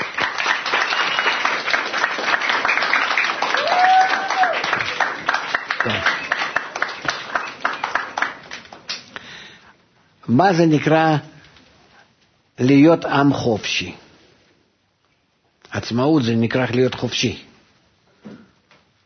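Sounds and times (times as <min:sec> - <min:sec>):
audience clapping: 0:00.0 - 0:09.4
speech: 0:10.3 - 0:11.3, 0:12.6 - 0:14.0, 0:15.8 - 0:17.5.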